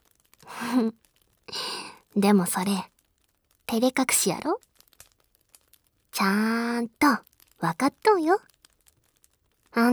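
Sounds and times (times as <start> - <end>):
person yawning: 0.5 - 0.9
speech: 0.6 - 1.0, 2.2 - 2.9, 3.7 - 4.7, 6.2 - 8.5, 9.8 - 9.9.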